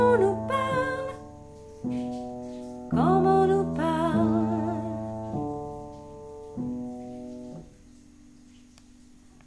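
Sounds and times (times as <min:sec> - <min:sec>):
soprano singing: 0:00.0 - 0:01.6, 0:02.9 - 0:05.9.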